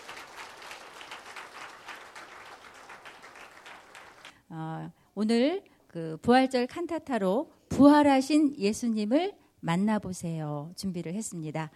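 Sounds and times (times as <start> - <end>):
audience applause: 0.0 - 4.3
speech: 4.5 - 11.7.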